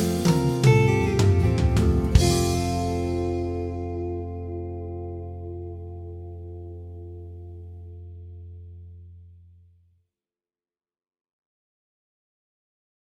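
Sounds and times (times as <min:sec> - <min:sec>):
harp playing in F at 80 bpm: 0:00.0 - 0:07.5.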